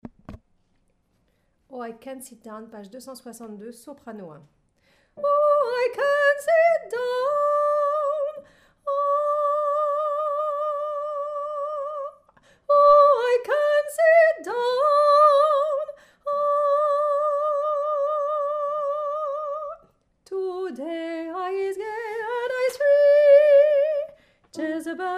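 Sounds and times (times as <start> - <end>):
soprano singing: 5.2 - 25.1.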